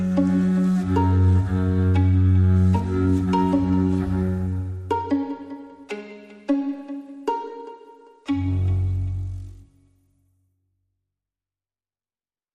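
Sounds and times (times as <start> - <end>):
string music without drums: 0.0 - 10.2.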